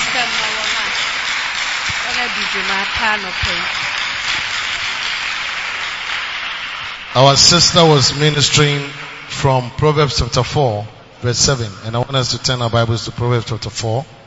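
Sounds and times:
audience clapping: 0.0 - 9.6
speech: 2.4 - 3.9, 7.2 - 14.2.

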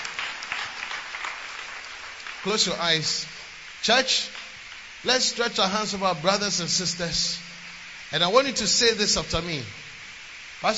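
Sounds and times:
audience clapping hands: 0.0 - 4.9
speech: 2.4 - 4.4, 5.0 - 7.4, 8.1 - 9.8, 10.6 - 10.7.

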